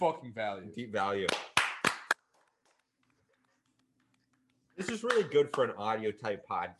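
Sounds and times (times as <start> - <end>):
speech: 0.0 - 1.6, 4.8 - 6.7
people clapping: 1.2 - 2.3, 4.8 - 5.8.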